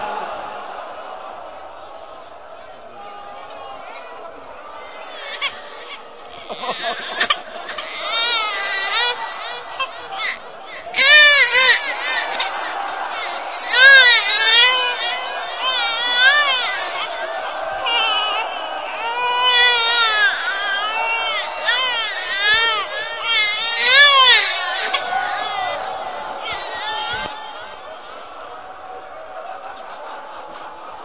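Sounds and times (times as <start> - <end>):
laughter: 0.0 - 31.0
voices and crowd murmur: 0.0 - 31.0
infant crying at a religious mourning recitation: 5.1 - 25.8, 26.4 - 27.3.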